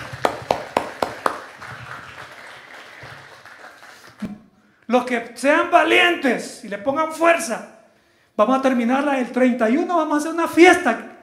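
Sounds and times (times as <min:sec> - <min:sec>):
audience applause: 0:00.0 - 0:04.2
speech: 0:04.9 - 0:07.7, 0:08.4 - 0:11.0.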